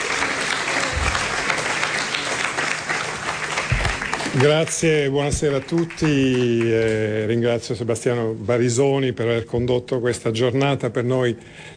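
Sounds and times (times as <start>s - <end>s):
audience applause: 0.0s - 7.0s
speech: 4.4s - 11.7s.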